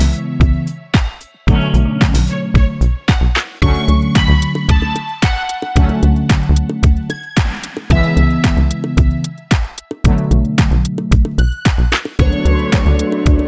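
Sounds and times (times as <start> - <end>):
chill house music: 0.0 - 13.4.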